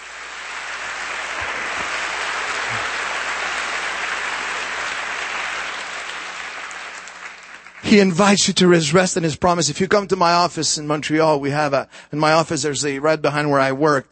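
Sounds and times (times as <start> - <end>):
church congregation giving an ovation: 0.0 - 8.6
speech: 7.9 - 14.0.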